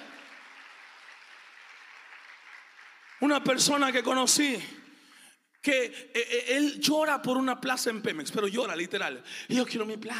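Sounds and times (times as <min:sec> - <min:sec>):
crowd applause: 0:00.0 - 0:03.9
speech: 0:03.2 - 0:04.8, 0:05.6 - 0:10.1.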